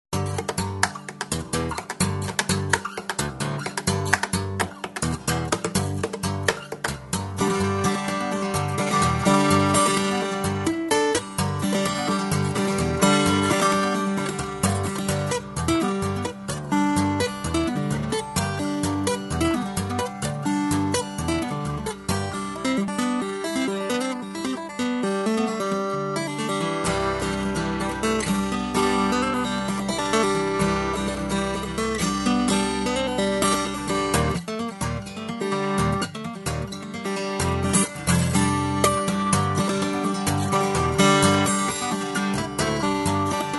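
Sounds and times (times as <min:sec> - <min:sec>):
acoustic guitar: 0:00.1 - 0:43.5.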